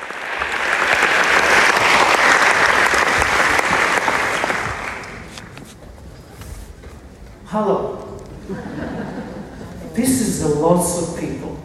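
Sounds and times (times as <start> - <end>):
loud applause from a large crowd: 0.0 - 5.6
speech: 7.5 - 7.8, 10.0 - 11.4
laughter: 8.4 - 9.9.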